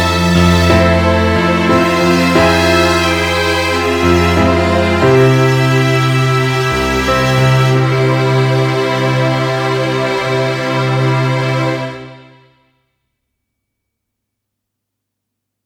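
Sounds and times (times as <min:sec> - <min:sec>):
J-pop rock strings: 0:00.0 - 0:12.2.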